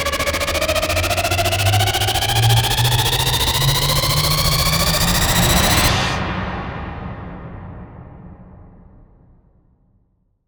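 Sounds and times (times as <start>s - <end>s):
riser sweep: 0.1s - 6.9s.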